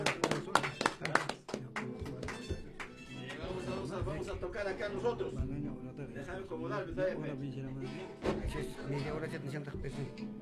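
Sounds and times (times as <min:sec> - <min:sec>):
group hand clapping: 0:00.0 - 0:03.6
speech: 0:04.1 - 0:10.4.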